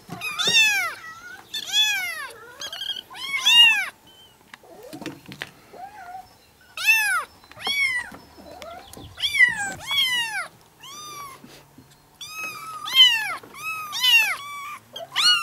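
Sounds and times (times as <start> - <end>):
kittens meowing: 0.1 - 4.0, 6.8 - 11.4, 12.2 - 15.4.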